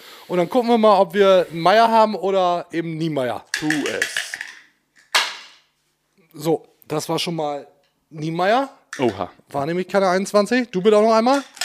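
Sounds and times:
speech: 0:00.3 - 0:04.2, 0:06.3 - 0:11.6
dice rolling: 0:03.5 - 0:05.6.

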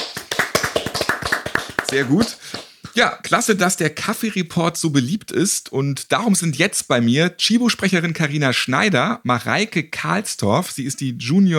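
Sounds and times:
brief spontaneous clapping: 0:00.0 - 0:02.7
speech: 0:01.9 - 0:11.5.

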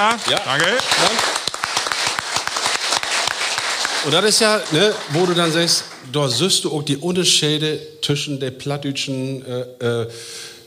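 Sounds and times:
speech: 0:00.0 - 0:01.4, 0:04.0 - 0:10.6
audience applause: 0:00.0 - 0:06.6.

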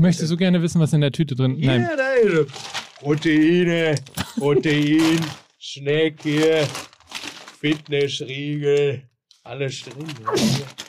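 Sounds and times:
speech: 0:00.0 - 0:06.9, 0:07.6 - 0:10.8
sneeze: 0:10.2 - 0:10.8.

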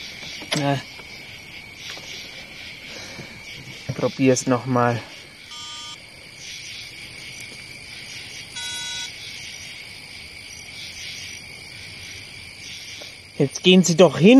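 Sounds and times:
insects chirring: 0:00.0 - 0:14.3
speech: 0:00.6 - 0:01.0, 0:04.0 - 0:05.1, 0:13.4 - 0:14.3
telephone ringing: 0:05.5 - 0:06.0, 0:08.6 - 0:09.1.

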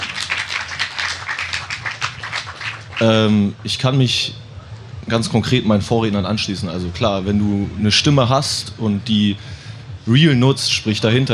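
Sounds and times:
applause: 0:00.0 - 0:03.3
speech: 0:03.0 - 0:04.4, 0:05.1 - 0:11.3.

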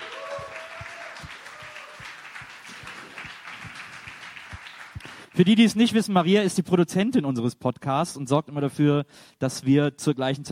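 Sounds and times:
audience applause: 0:00.0 - 0:05.4
speech: 0:05.4 - 0:10.5.

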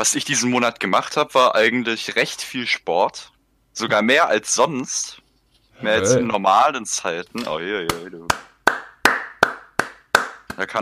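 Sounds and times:
speech: 0:00.0 - 0:05.2, 0:05.8 - 0:08.5, 0:10.6 - 0:10.8
hand clapping: 0:07.8 - 0:10.8.

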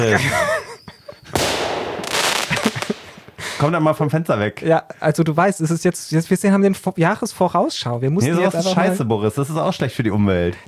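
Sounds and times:
speech: 0:00.0 - 0:00.6, 0:03.6 - 0:10.6
laughter: 0:00.0 - 0:01.4, 0:02.3 - 0:04.0
loud crackling hiss: 0:01.2 - 0:04.0
firecracker sound effect from a recording: 0:01.3 - 0:03.7.

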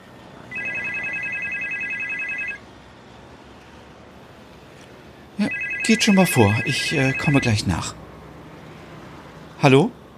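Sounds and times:
telephone ringing: 0:00.5 - 0:02.6, 0:05.4 - 0:07.9
speech: 0:05.9 - 0:08.0, 0:09.6 - 0:10.0.

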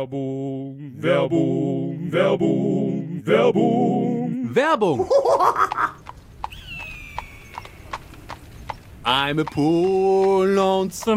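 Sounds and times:
speech: 0:00.0 - 0:06.0, 0:09.0 - 0:11.1
laughter: 0:05.0 - 0:06.0
horse hooves clip-clopping in a comedy sketch: 0:05.5 - 0:11.1
thin high sliding whistling tone: 0:06.5 - 0:07.8.

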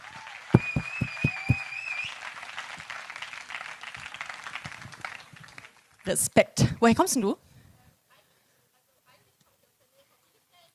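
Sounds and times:
audience applause: 0:00.0 - 0:06.0
speech: 0:06.1 - 0:07.4.

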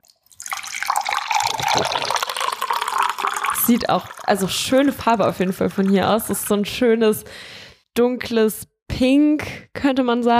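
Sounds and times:
fizzy drink pouring: 0:00.0 - 0:06.7
speech: 0:03.7 - 0:10.3.

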